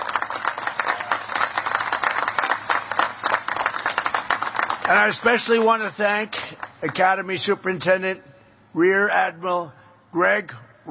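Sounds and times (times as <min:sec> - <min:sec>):
audience applause: 0:00.0 - 0:07.0
speech: 0:04.9 - 0:10.8.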